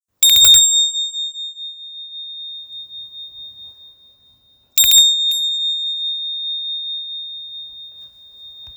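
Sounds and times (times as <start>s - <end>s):
mini Tibetan bell: 0.0s - 8.7s.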